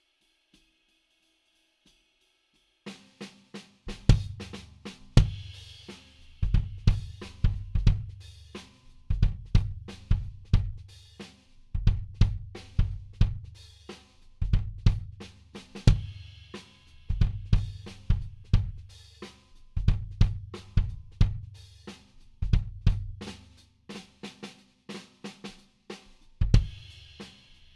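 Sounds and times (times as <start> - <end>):
kick drum: 3.9 - 4.5, 5.2 - 5.4, 6.4 - 8.2, 9.1 - 10.8, 11.8 - 13.5, 14.4 - 15.2, 15.8 - 16.1, 17.1 - 18.8, 19.8 - 21.5, 22.4 - 23.2, 26.4 - 26.8.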